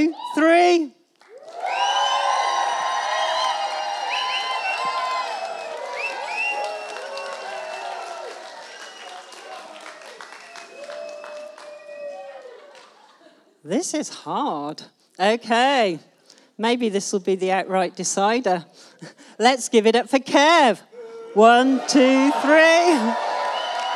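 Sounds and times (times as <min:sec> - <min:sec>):
crowd applause: 0:01.2 - 0:13.2, 0:21.6 - 0:23.9
laughter: 0:12.2 - 0:13.6
speech: 0:13.8 - 0:23.3.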